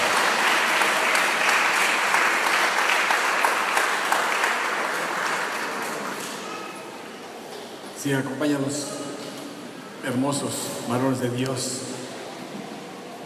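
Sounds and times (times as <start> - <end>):
audience applause: 0.0 - 6.8
speech: 8.0 - 9.0, 10.0 - 11.9.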